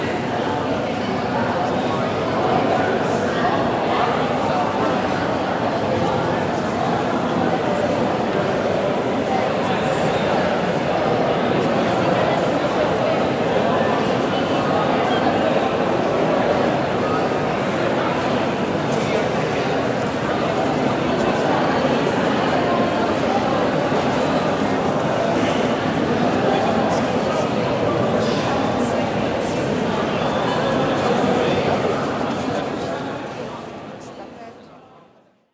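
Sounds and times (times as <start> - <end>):
crowd walla in a mall interior: 0.0 - 35.4.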